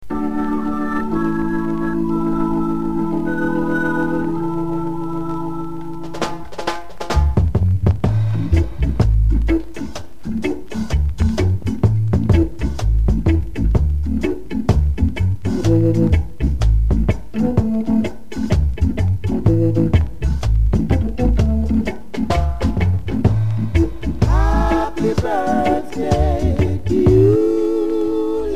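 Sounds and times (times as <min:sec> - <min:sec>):
birthday dub music: 0:00.0 - 0:28.5.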